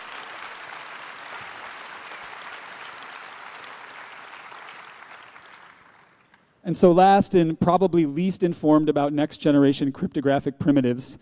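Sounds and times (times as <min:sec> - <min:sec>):
audience applause: 0:00.0 - 0:06.4
speech: 0:06.6 - 0:11.1.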